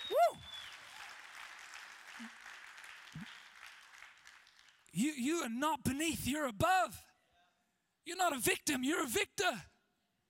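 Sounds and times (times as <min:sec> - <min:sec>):
audience clapping: 0:00.0 - 0:05.0
speech: 0:02.2 - 0:02.4, 0:05.0 - 0:07.1, 0:08.0 - 0:09.7.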